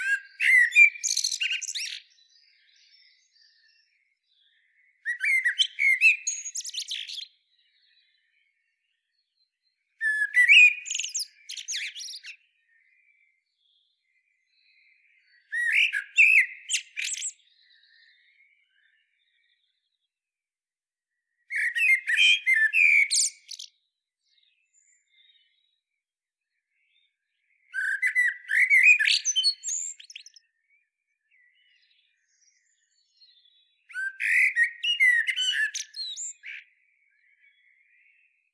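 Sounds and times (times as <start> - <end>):
common blackbird singing: 0.0 - 20.2, 21.1 - 38.5.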